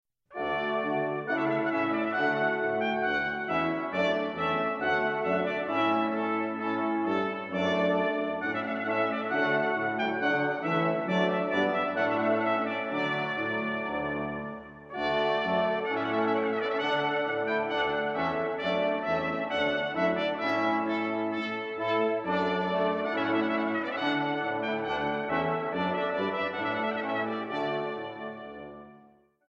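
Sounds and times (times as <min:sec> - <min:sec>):
trumpet piece: 0:00.3 - 0:29.3.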